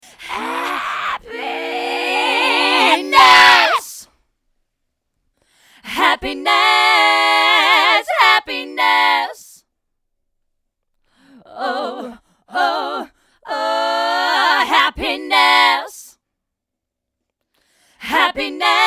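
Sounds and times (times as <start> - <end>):
happy vocal: 0.0 - 4.2, 5.4 - 9.7, 11.1 - 16.2, 17.6 - 18.8.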